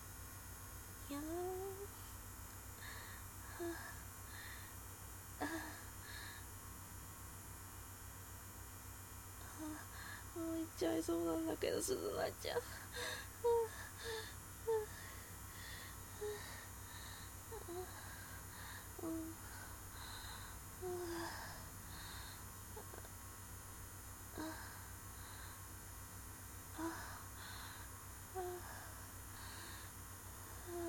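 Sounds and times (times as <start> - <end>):
low steady hum: 0.0 - 30.8
soft breathing: 1.9 - 4.8, 5.4 - 6.6, 9.4 - 10.4, 12.6 - 23.1, 23.7 - 25.8, 26.7 - 30.8
speech: 10.4 - 13.2.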